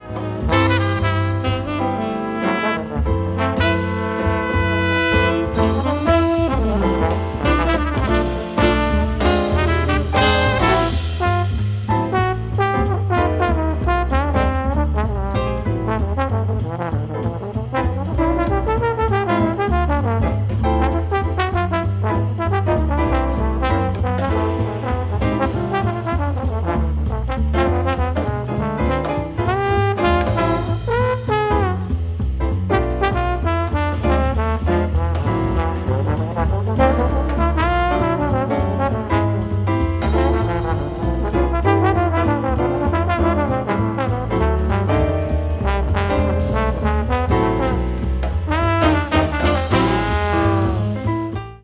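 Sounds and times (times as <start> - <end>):
trombone solo: 0.0 - 32.0, 32.7 - 51.4.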